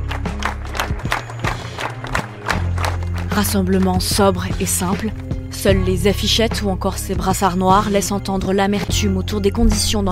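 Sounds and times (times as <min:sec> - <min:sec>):
crowd applauding at a memorial: 0:00.0 - 0:05.2
speech: 0:03.4 - 0:10.1.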